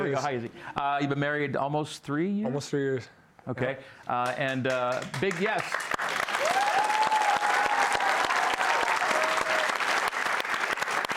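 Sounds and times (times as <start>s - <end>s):
speech: 0.1s - 6.0s
audience applause: 4.7s - 11.1s.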